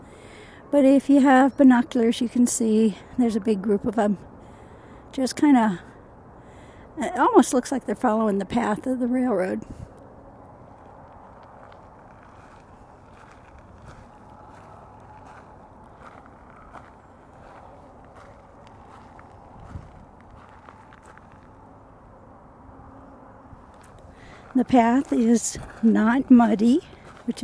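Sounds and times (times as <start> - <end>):
low rumble: 0.0 - 27.4
speech: 0.7 - 4.3, 5.2 - 5.9, 7.0 - 9.8, 24.6 - 27.4
footsteps on a dry dirt path: 10.6 - 21.9, 23.6 - 27.4.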